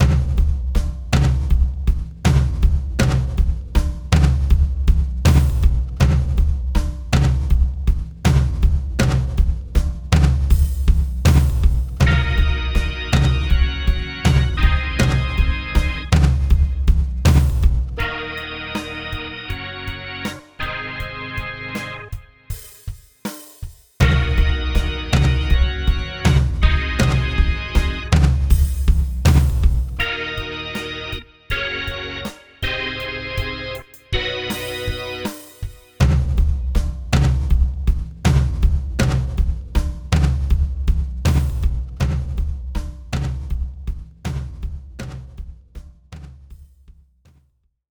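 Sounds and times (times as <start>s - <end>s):
game music drums: 0.0s - 47.5s.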